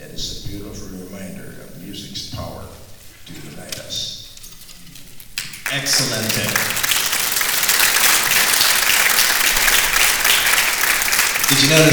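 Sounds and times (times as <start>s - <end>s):
audience applause: 5.4s - 11.9s
speech: 5.7s - 6.8s, 11.5s - 11.9s.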